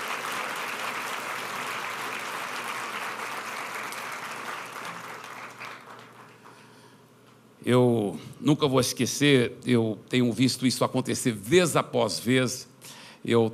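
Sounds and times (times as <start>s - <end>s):
audience applause: 0.0s - 6.7s
speech: 7.6s - 13.5s.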